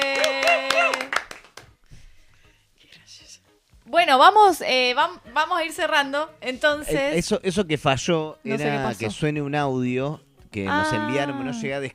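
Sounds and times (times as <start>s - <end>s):
people clapping: 0.0s - 1.9s
speech: 4.0s - 11.9s.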